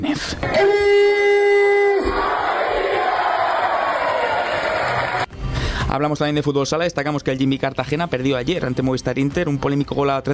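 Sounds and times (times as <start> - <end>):
speech: 0.0 - 1.0, 6.0 - 10.3
football fans celebrating promotion: 1.9 - 5.3.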